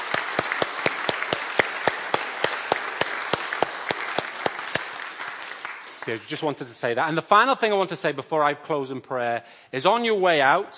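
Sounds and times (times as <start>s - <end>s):
audience clapping: 0.0s - 6.7s
speech: 6.0s - 10.7s.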